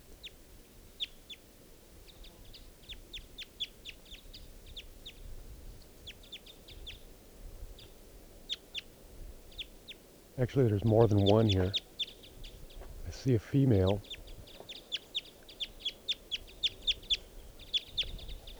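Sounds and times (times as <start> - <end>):
speech: 10.4 - 11.8, 13.2 - 14.1
male wild bird chirping: 10.4 - 18.5.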